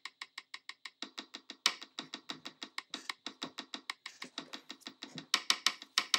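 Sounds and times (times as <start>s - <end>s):
drum sounds sonifying European fuel prices: 1.8s - 6.1s.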